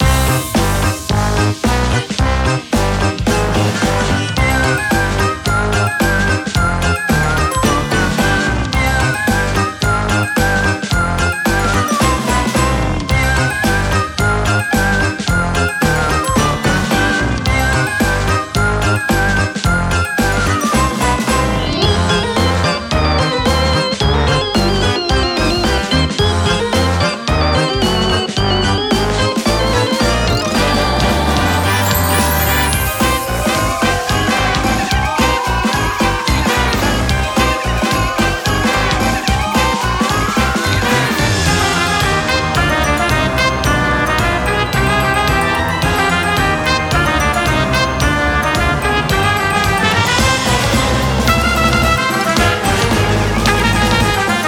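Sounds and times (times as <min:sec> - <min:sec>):
music loop: 0:00.0 - 0:54.4.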